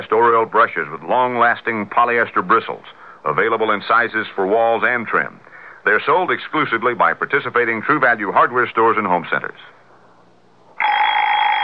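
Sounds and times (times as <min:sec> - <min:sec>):
speech: 0:00.1 - 0:09.8
wind-up alarm clock ringing: 0:10.8 - 0:11.6.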